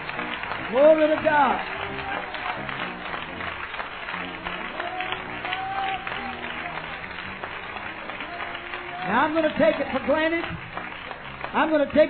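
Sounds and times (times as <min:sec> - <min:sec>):
crowd audience clapping hands: 0:00.0 - 0:12.0
speech: 0:00.7 - 0:02.2, 0:09.1 - 0:10.6, 0:11.5 - 0:12.0.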